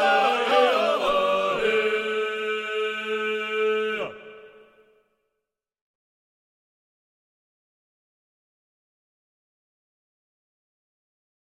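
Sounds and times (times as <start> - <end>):
Georgian polyphonic singing: 0.0 - 4.9.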